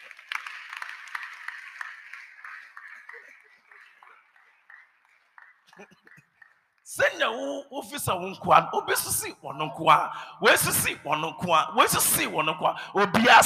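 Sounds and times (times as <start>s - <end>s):
crowd clapping: 0.0s - 7.0s
speech: 5.8s - 6.1s, 6.9s - 13.4s.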